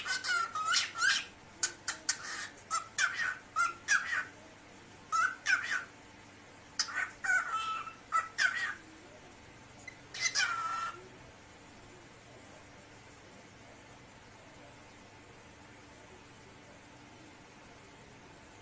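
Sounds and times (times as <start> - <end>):
cockatiel buzzy calls and whistles: 0.0 - 4.4, 5.1 - 6.0, 6.8 - 8.8, 9.8 - 11.1.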